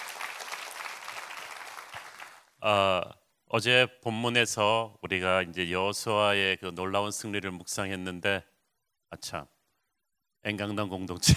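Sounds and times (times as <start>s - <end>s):
audience applause: 0.0s - 2.5s
speech: 2.6s - 8.5s, 9.1s - 9.6s, 10.4s - 11.3s.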